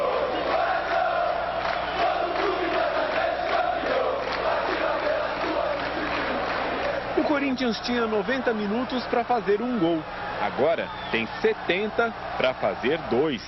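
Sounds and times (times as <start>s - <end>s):
large stadium crowd singing a chant: 0.0s - 7.1s
speech: 7.4s - 13.4s.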